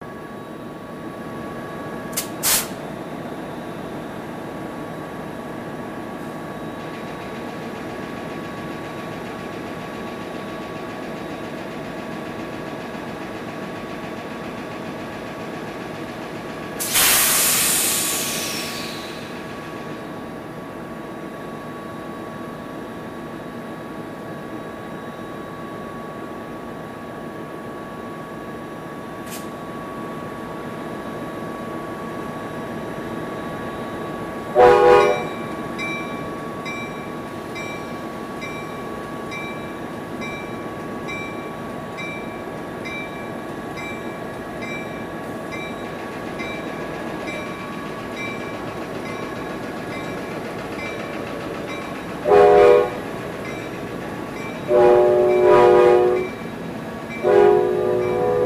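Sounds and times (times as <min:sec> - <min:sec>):
train idling: 0:00.0 - 0:58.4
train air blast: 0:02.2 - 0:02.8, 0:16.8 - 0:19.2.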